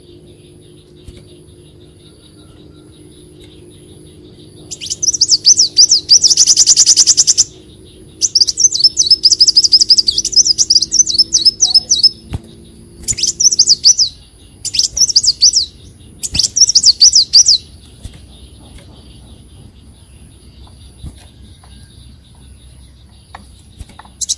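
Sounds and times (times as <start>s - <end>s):
faint hum: 0.0s - 24.3s
leafbird song: 0.0s - 24.3s.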